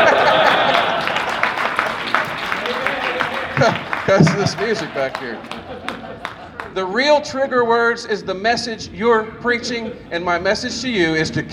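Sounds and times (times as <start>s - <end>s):
audience clapping hands: 0.0s - 6.8s
laughter: 0.0s - 7.8s, 9.4s - 10.5s
crowd noise: 0.0s - 11.5s
speech: 3.6s - 5.9s, 6.8s - 11.5s.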